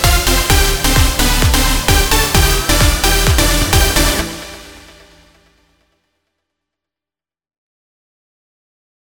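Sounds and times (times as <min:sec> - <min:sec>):
electronic dance music: 0:00.0 - 0:05.6.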